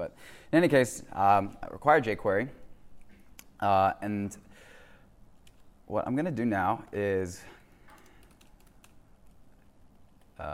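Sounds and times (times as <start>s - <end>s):
speech: 0.0s - 2.6s, 3.6s - 4.7s, 5.9s - 7.6s
typing on a computer keyboard: 7.8s - 10.4s.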